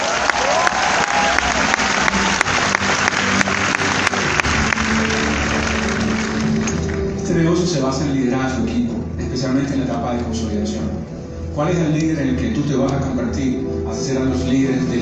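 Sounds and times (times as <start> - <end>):
sustained applause from a crowd: 0.0 - 7.2
speech: 7.8 - 15.0.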